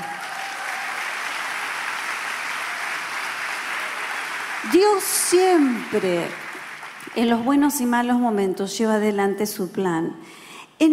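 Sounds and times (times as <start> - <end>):
audience applause: 0.0 - 7.5
speech: 4.6 - 6.4, 7.1 - 10.9.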